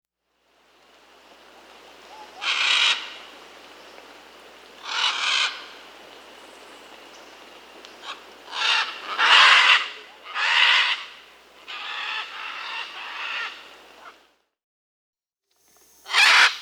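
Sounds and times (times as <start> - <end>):
scarlet macaw Ara macao squawking in Peru: 2.1 - 3.2, 4.8 - 5.7, 8.0 - 14.2, 16.0 - 16.5.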